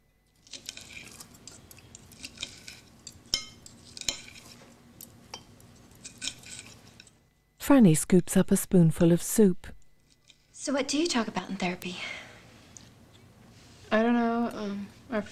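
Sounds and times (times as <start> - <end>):
salad leaves being cut up on a plate: 0.4 - 7.1
knife clinking against the dish: 0.5 - 7.1
speech: 7.7 - 9.8, 10.6 - 12.2, 13.9 - 15.2.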